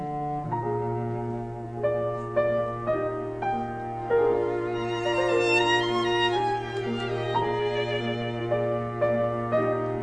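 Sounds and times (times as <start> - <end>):
piano quartet playing a slow movement in E flat major: 0.0 - 10.0.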